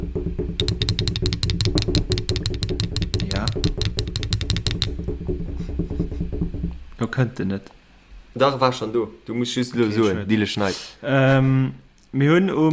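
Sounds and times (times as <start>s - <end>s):
drum roll: 0.0s - 7.0s
speech: 7.0s - 7.8s, 8.4s - 12.7s.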